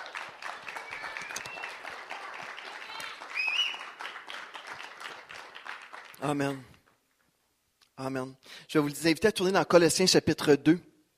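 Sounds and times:
audience applause: 0.0 - 6.6
faint high voices or cheers: 0.6 - 3.9
speech: 6.2 - 6.8, 8.0 - 10.9.

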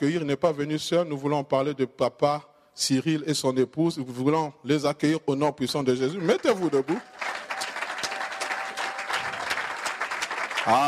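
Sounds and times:
speech: 0.0 - 7.3, 10.6 - 10.8
timid cheering and applause: 6.2 - 10.8.

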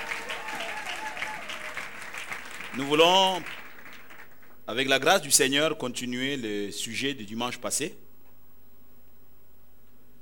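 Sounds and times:
congregation applauding during a church service: 0.0 - 4.6
speech: 2.8 - 3.6, 4.7 - 8.0.

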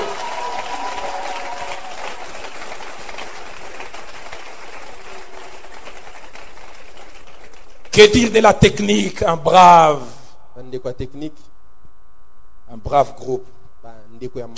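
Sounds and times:
audience applause for the protocol staff at a gathering: 0.0 - 7.9
speech: 8.0 - 11.5, 12.7 - 14.5.

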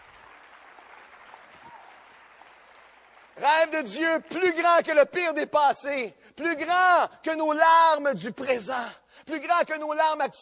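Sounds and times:
audience applause: 0.0 - 4.3
speech: 3.4 - 10.4.

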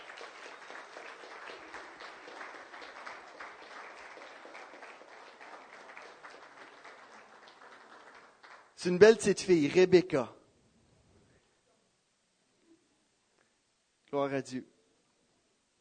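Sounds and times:
audience applauding: 0.0 - 9.1
speech: 8.8 - 10.4, 14.4 - 14.8.

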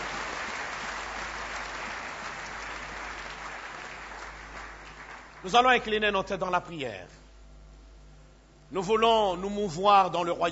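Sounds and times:
church congregation applauding the Lord: 0.0 - 6.0
speech: 5.4 - 7.2, 8.7 - 10.5.

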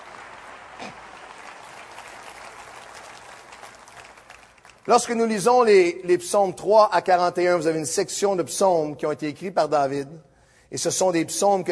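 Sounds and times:
audience applause: 0.0 - 5.1
speech: 4.8 - 11.6.

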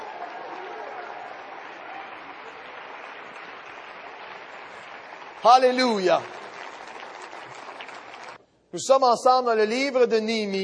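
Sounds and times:
audience applauding and cheering: 0.0 - 8.4
speech: 5.4 - 6.5, 8.7 - 10.6.

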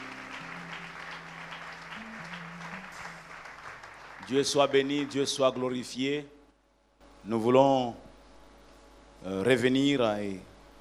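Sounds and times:
church congregation clapping during a worship service: 0.0 - 5.7
speech: 4.3 - 6.4, 7.2 - 8.1, 9.2 - 10.5.

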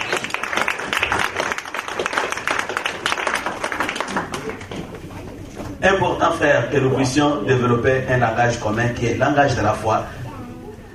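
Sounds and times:
audience applauding: 0.0 - 5.0
speech: 5.8 - 10.2.

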